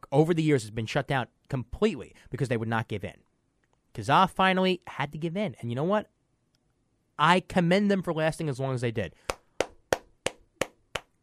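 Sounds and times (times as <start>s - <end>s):
speech: 0.1s - 3.3s, 4.0s - 6.2s, 7.2s - 9.4s
single person clapping: 9.2s - 11.2s.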